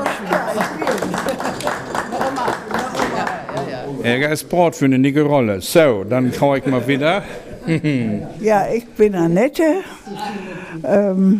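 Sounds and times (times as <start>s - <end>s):
audience applause: 0.0s - 3.8s
speech: 4.1s - 11.3s
laughter: 6.2s - 8.4s.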